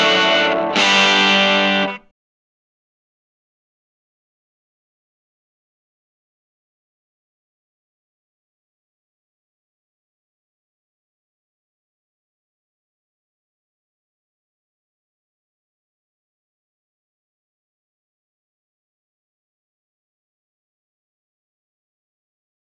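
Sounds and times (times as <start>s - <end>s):
open chords on Tele guitar through Vox AC4TV amplifier: 0.0s - 2.1s.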